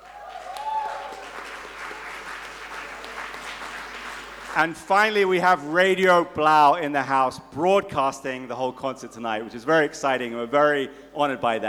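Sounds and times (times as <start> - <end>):
person cheering: 0.0 - 1.3
audience applause: 0.0 - 4.8
speech: 4.6 - 11.6.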